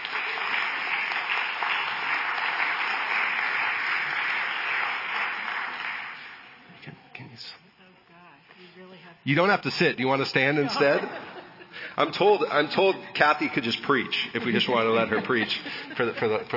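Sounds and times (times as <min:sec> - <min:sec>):
crowd applauding and cheering: 0:00.0 - 0:06.6
speech: 0:09.2 - 0:11.3, 0:12.0 - 0:16.5
laughter: 0:10.3 - 0:16.5.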